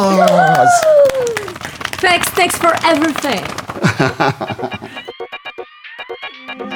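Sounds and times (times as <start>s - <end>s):
audience applause: 0.0s - 4.4s
speech: 2.0s - 5.1s
laughter: 3.7s - 5.1s.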